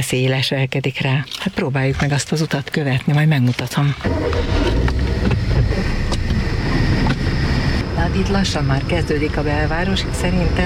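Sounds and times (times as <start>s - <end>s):
speech: 0.0s - 5.7s, 8.1s - 10.6s
road traffic rumble: 3.6s - 10.6s.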